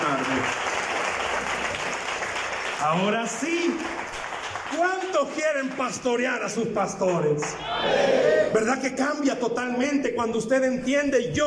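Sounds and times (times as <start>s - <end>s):
crowd applauding: 0.0s - 8.4s
speech: 2.8s - 4.0s, 4.7s - 11.4s.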